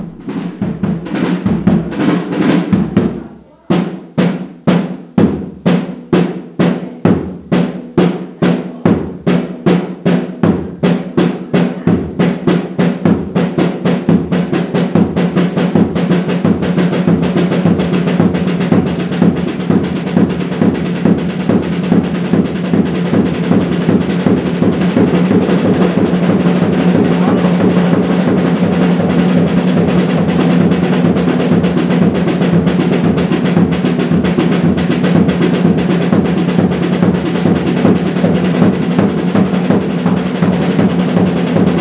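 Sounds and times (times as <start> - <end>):
drum solo: 0.0 - 41.7.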